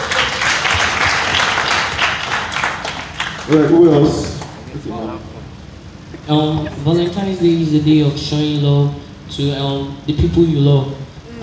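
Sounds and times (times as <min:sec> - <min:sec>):
crowd applauding: 0:00.0 - 0:04.9
speech: 0:03.5 - 0:05.4, 0:06.3 - 0:11.0.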